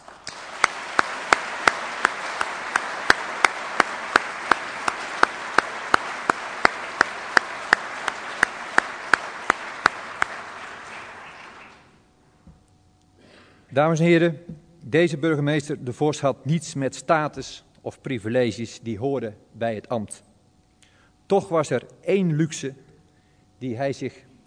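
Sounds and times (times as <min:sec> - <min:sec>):
audience applause: 0:00.0 - 0:12.0
speech: 0:13.8 - 0:20.3, 0:21.3 - 0:22.8, 0:23.6 - 0:24.4.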